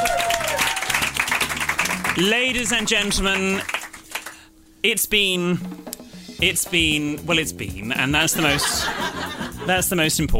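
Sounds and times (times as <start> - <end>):
audience applause: 0.0 - 4.4
speech: 2.2 - 3.8, 4.8 - 10.3
laughter: 8.2 - 10.0.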